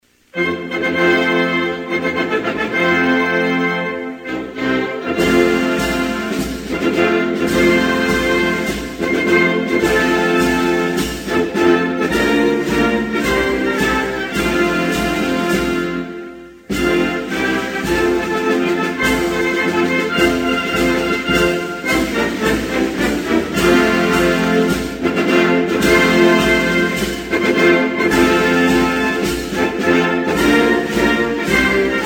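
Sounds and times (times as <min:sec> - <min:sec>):
national anthem: 0:00.0 - 0:32.0.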